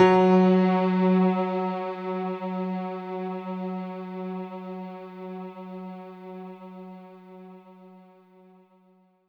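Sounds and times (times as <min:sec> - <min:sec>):
synth note: 0:00.0 - 0:02.8.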